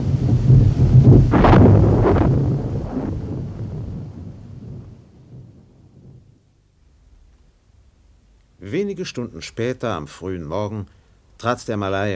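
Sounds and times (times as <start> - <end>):
wind noise: 0.0 - 6.4
thunder rumbling in a thunderstorm: 0.0 - 7.4
speech: 9.0 - 12.1.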